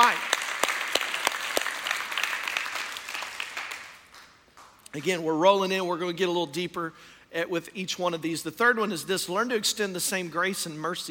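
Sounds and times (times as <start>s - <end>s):
audience clapping: 0.0s - 5.2s
speech: 5.0s - 11.0s.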